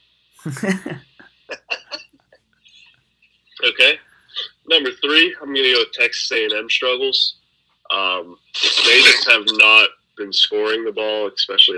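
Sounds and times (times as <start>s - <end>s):
person coughing: 0.4s - 1.0s
speech: 0.4s - 1.1s, 3.8s - 4.0s, 4.7s - 11.7s.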